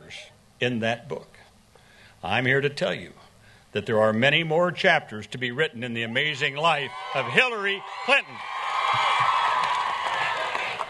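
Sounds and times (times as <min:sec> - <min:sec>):
speech: 0:00.1 - 0:01.3, 0:02.2 - 0:09.4
crowd cheering and chanting at Hillary Clinton rally in Iowa: 0:06.6 - 0:10.8.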